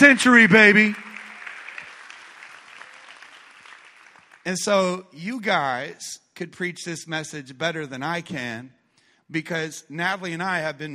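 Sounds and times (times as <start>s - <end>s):
speech: 0.0s - 1.0s, 4.5s - 10.9s
audience round of applause: 0.0s - 4.5s.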